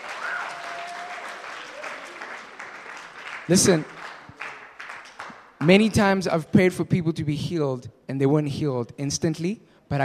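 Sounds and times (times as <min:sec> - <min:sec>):
group applause: 0:00.0 - 0:06.2
speech: 0:03.5 - 0:04.0, 0:05.6 - 0:10.0.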